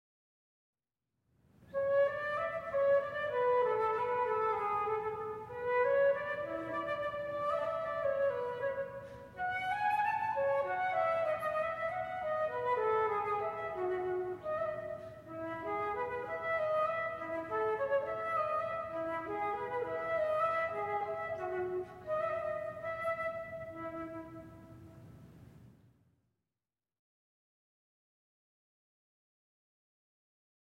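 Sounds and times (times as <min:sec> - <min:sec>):
unaccompanied flute sonata: 0:01.7 - 0:25.3.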